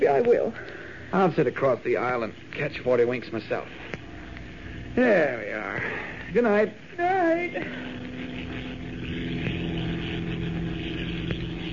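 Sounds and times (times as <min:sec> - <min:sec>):
speech: 0:00.0 - 0:03.9, 0:05.0 - 0:08.0
gray twin-engine transport plane motors droning in flight: 0:00.0 - 0:11.7.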